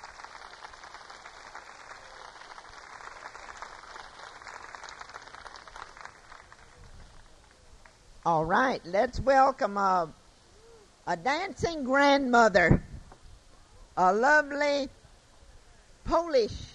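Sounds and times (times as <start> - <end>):
audience applauding performers: 0.0 - 8.0
speech: 8.2 - 10.2, 11.1 - 12.8, 14.0 - 15.0, 16.1 - 16.6.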